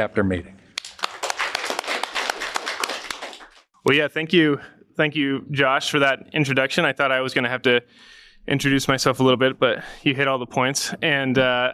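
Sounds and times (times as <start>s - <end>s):
speech: 0.0s - 0.6s, 3.8s - 11.7s
audience applause: 0.8s - 3.7s.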